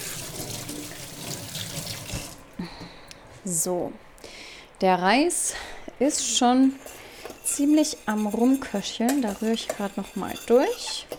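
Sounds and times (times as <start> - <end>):
person washing hands: 0.0 - 2.4
speech: 3.4 - 4.1, 4.8 - 11.1.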